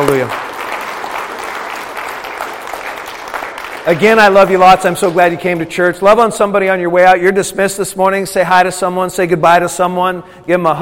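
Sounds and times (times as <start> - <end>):
congregation clapping: 0.0 - 6.2
speech: 3.9 - 10.8.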